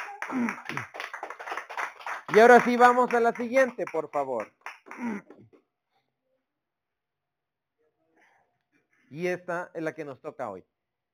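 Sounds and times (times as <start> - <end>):
voiced exclamations: 0.0 - 1.0
audience applause: 0.0 - 5.2
speech: 0.3 - 1.0, 2.3 - 5.5, 9.1 - 10.7.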